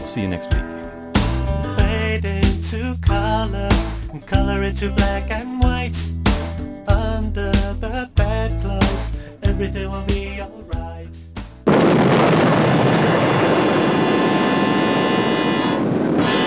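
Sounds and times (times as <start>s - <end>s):
speech: 0.2s - 0.6s, 2.2s - 11.2s
nuclear weapon explosion roar: 11.6s - 16.3s.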